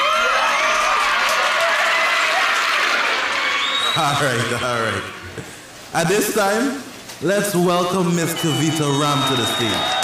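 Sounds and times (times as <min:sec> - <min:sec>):
crowd at a stage event applauding: 0:00.0 - 0:05.4, 0:08.1 - 0:10.0
speech: 0:04.0 - 0:10.0.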